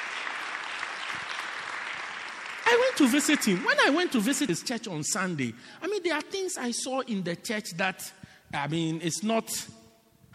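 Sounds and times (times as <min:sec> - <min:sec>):
audience clapping: 0:00.0 - 0:04.7
speech: 0:02.7 - 0:09.8.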